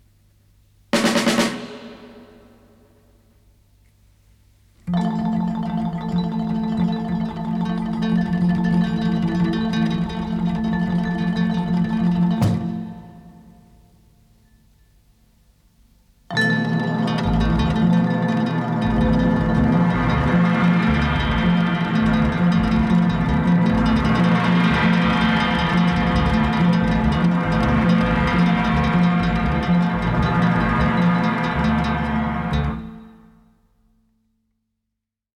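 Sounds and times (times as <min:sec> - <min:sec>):
abstract asian music: 0:05.0 - 0:13.8, 0:16.4 - 0:33.4.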